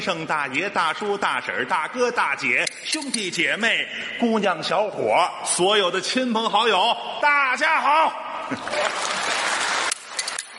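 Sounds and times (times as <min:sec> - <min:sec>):
speech: 0:00.0 - 0:09.2
audience applause at a live stage show: 0:08.5 - 0:10.2.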